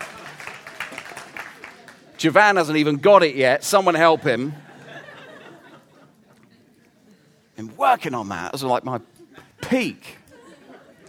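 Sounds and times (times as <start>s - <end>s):
soft scattered applause from a small group: 0.0s - 3.0s
speech: 2.2s - 4.7s, 7.6s - 9.1s, 9.7s - 10.2s
laughter: 3.8s - 7.0s, 9.0s - 11.0s.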